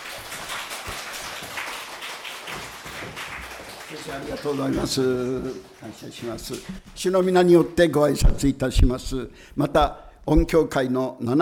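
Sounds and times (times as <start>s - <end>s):
audience applause welcoming a speaker: 0.0s - 6.6s
speech: 4.0s - 11.3s.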